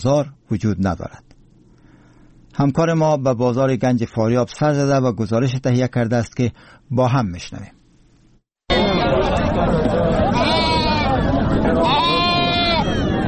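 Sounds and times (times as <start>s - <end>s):
speech: 0.0s - 1.3s, 2.6s - 7.8s, 9.6s - 10.2s
bleating sheep at livestock market: 10.3s - 11.2s, 11.8s - 13.1s.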